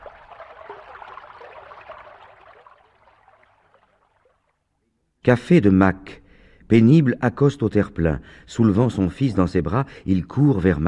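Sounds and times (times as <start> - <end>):
water swishing and lapping around a small boat being poled toward Saint-Laurent: 0.0 - 4.7
speech: 5.2 - 10.8.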